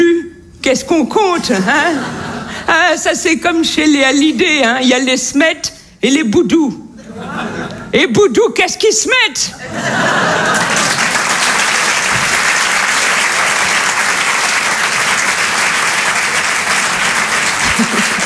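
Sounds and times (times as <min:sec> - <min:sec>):
speech: 0:00.7 - 0:07.3, 0:07.9 - 0:10.6
laughter: 0:01.4 - 0:02.8, 0:07.0 - 0:08.0, 0:09.5 - 0:18.2
audience applause: 0:09.8 - 0:18.2.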